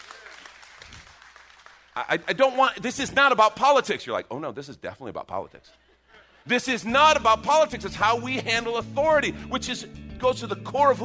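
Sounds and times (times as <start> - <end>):
crowd applauding: 0.0 - 2.6
speech: 2.0 - 11.0.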